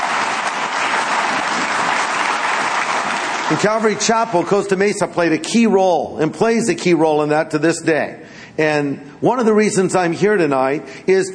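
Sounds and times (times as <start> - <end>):
audience applause: 0.0 - 4.0
speech: 3.5 - 11.3.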